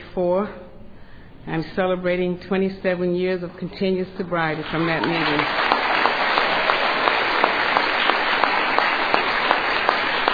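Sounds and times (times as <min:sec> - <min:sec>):
speech: 0:00.2 - 0:00.6, 0:01.4 - 0:05.6
audience applause: 0:04.6 - 0:10.3.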